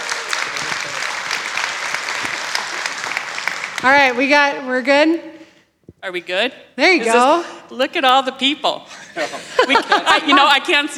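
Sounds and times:
audience applause: 0:00.0 - 0:04.2
speech: 0:03.8 - 0:05.3, 0:06.0 - 0:10.9
laughter: 0:08.9 - 0:10.9.

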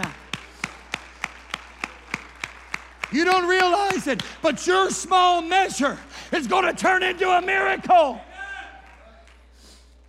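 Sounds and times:
audience clapping hands in praise: 0:00.0 - 0:05.0
speech: 0:03.1 - 0:08.3.

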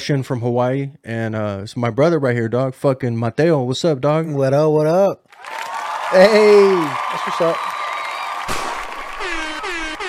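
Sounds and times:
speech: 0:00.0 - 0:07.7
gunshot sound effect: 0:08.5 - 0:10.0.

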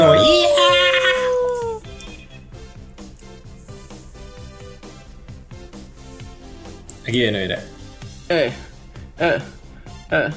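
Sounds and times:
long high-pitched scream in a song: 0:00.0 - 0:01.8
second fainter cry: 0:00.0 - 0:01.9
driving musical beat: 0:00.0 - 0:10.3
speech: 0:07.1 - 0:07.7, 0:08.3 - 0:08.6, 0:09.2 - 0:10.3.

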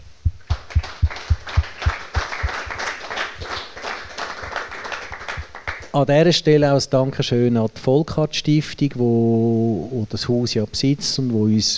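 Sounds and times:
audience applause: 0:00.5 - 0:05.9
speech: 0:06.0 - 0:11.7.

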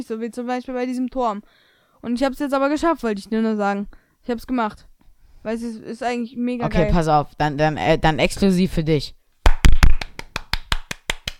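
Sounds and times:
speech: 0:00.0 - 0:09.2
hand clapping: 0:09.4 - 0:11.3.

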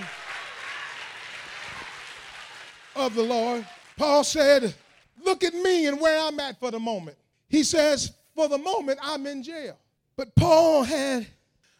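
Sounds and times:
audience clapping hands: 0:00.0 - 0:05.3
speech: 0:03.0 - 0:11.4.

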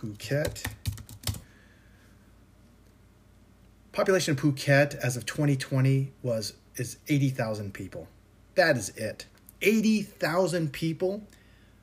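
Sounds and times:
speech: 0:00.0 - 0:00.8, 0:04.0 - 0:11.8
typing on a computer keyboard during a web search: 0:00.0 - 0:01.5.

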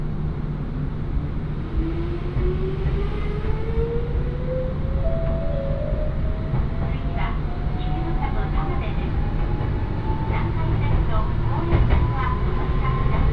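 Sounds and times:
train rumble from on board: 0:00.0 - 0:13.3
clicks and knocks from the rails: 0:05.2 - 0:13.3.

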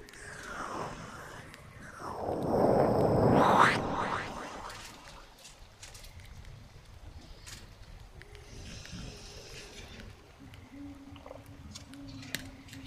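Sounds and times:
airy whooshing: 0:00.0 - 0:05.5.

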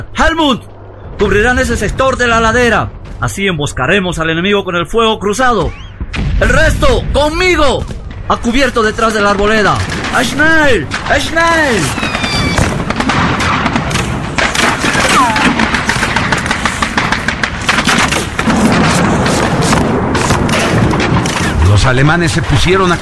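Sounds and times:
speech: 0:00.0 - 0:12.2, 0:21.8 - 0:23.0
mortar fire explosions in a barrage: 0:00.4 - 0:23.0.

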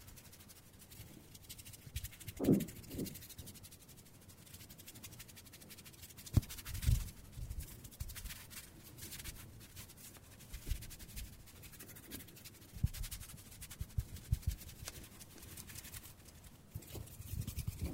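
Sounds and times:
dry rustling and crackling of hands rubbing: 0:00.0 - 0:17.9
soft low thumps: 0:02.4 - 0:03.2.

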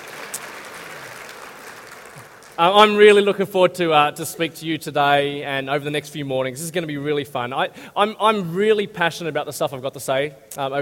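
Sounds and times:
audience applause: 0:00.0 - 0:02.8
speech: 0:02.6 - 0:10.7.

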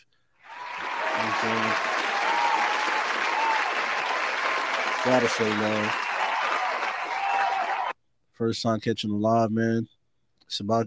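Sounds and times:
applause: 0:00.4 - 0:07.9
speech: 0:01.4 - 0:01.9, 0:05.0 - 0:06.1, 0:08.4 - 0:10.8.

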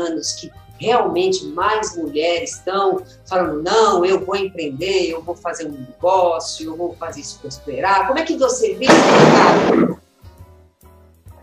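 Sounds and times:
speech: 0:00.0 - 0:10.0
thunder crack from a lightning strike: 0:08.9 - 0:10.0.

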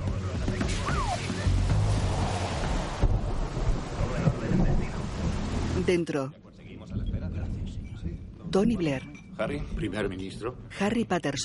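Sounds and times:
rain: 0:00.1 - 0:06.2
speech: 0:05.9 - 0:06.4, 0:08.5 - 0:11.4.

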